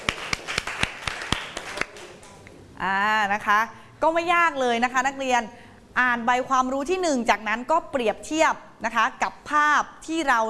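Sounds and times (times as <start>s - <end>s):
classroom clapping: 0.0s - 2.4s
speech: 2.8s - 10.4s.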